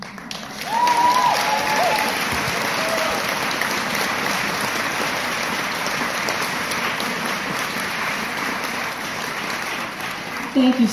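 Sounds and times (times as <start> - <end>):
crowd applauding: 0.0 - 10.9
crowd cheering and whooping: 0.5 - 3.7.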